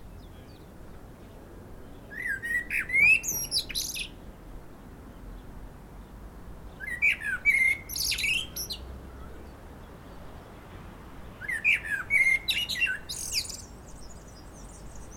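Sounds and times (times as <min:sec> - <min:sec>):
common blackbird Turdus merula singing: 0:00.0 - 0:00.7, 0:01.8 - 0:04.2, 0:06.7 - 0:10.2, 0:11.3 - 0:15.1.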